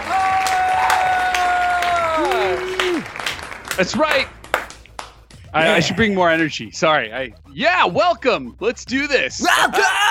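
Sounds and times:
audience applause: 0.0s - 5.1s
speech: 3.8s - 4.4s, 5.5s - 10.0s.

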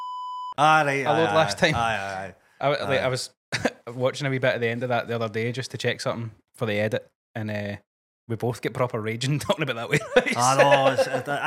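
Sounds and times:
censor beep sound effect: 0.0s - 0.6s
speech: 0.6s - 11.4s
laughter: 9.9s - 11.4s.

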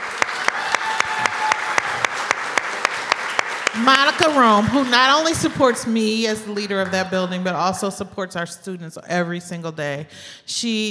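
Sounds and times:
audience applauding: 0.0s - 7.3s
speech: 3.8s - 10.8s.

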